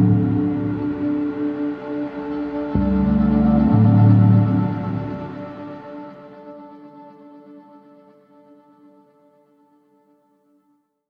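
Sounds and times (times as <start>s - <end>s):
electro music: 0.0s - 7.1s.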